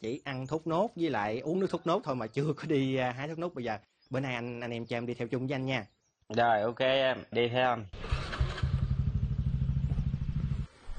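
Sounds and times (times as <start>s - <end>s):
speech: 0.0s - 8.1s
motorbike engine running as the rider heads into a palmyra palm orchard: 8.0s - 10.7s.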